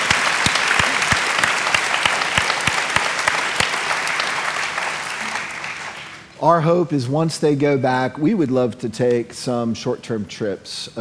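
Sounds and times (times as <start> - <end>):
audience applause: 0.0 - 6.2
speech: 6.4 - 11.0.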